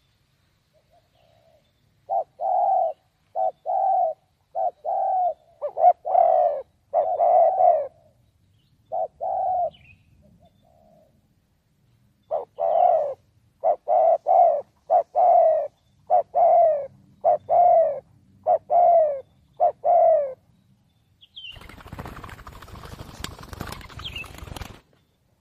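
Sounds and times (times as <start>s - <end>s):
spotted dove cooing: 0.8s - 8.2s, 8.9s - 9.8s, 12.3s - 20.4s.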